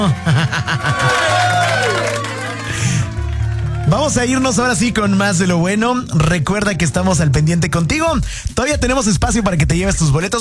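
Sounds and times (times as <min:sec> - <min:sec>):
speech: 0:00.0 - 0:00.9, 0:03.9 - 0:10.3
excited voices and laughter: 0:00.0 - 0:02.7
audience clapping and cheering: 0:00.0 - 0:06.3.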